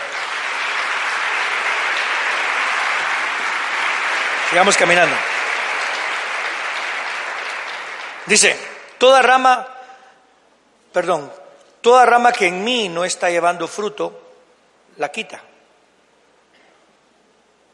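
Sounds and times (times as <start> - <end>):
audience applauding loudly: 0.0 - 9.0
speech: 4.5 - 5.3, 8.3 - 9.7, 10.9 - 14.2, 15.0 - 15.5.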